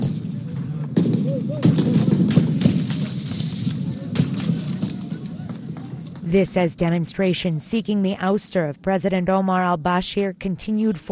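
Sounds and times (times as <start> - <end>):
gunfire outside the Sudanese military headquarters in Khartoum: 0.0 - 6.3
speech: 6.3 - 11.1.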